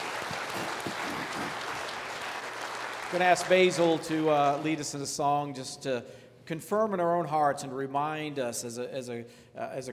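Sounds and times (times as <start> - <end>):
church service congregation clapping: 0.0 - 5.2
speech: 3.1 - 9.9.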